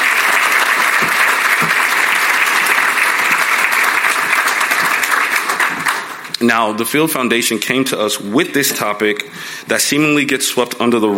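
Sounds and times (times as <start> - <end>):
sizable audience applause: 0.0 - 6.3
speech: 6.4 - 11.1.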